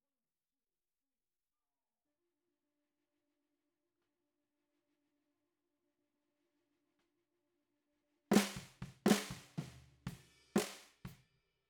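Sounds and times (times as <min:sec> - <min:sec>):
bottom snare drum: 0:08.3 - 0:11.1.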